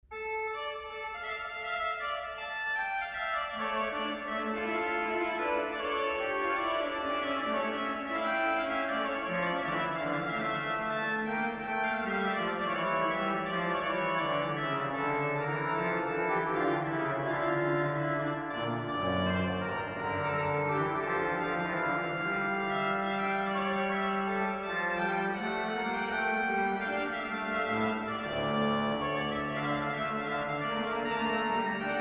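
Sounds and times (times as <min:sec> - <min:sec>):
organ duo: 0:00.1 - 0:31.9.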